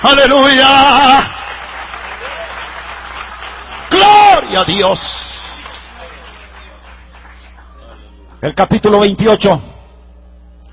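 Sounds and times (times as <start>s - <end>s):
speech: 0.0s - 1.4s, 3.9s - 5.1s, 8.4s - 9.7s
audience applause: 0.0s - 8.2s.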